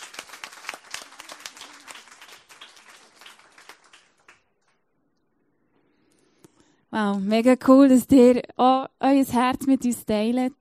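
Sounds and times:
audience applause: 0.0s - 4.8s
speech: 7.0s - 10.5s.

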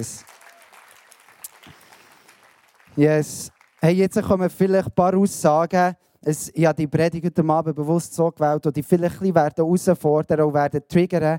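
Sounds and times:
speech: 0.0s - 0.3s, 3.0s - 11.3s
crowd applauding: 0.0s - 4.2s.

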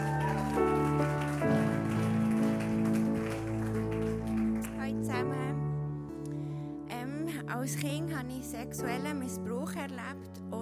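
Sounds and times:
crowd clapping: 0.0s - 5.5s
keyboard chords: 0.0s - 10.6s
speech: 7.6s - 10.6s.

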